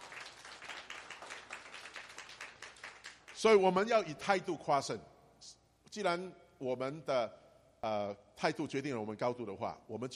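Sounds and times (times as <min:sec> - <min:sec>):
audience clapping: 0:00.0 - 0:03.5
speech: 0:03.4 - 0:05.1, 0:06.0 - 0:10.1.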